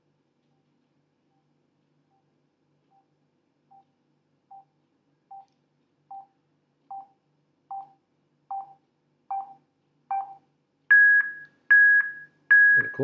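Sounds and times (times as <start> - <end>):
short electronic beeps from a loudspeaker: 7.7 - 13.0.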